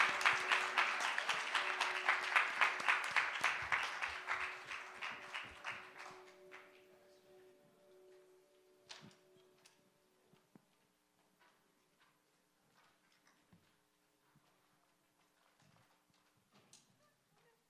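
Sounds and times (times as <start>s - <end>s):
crowd applause: 0.0s - 6.9s.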